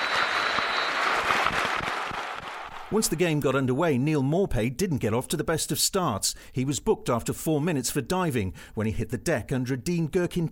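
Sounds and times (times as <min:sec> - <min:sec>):
football stadium crowd applause: 0:00.0 - 0:03.2
speech: 0:02.9 - 0:10.5.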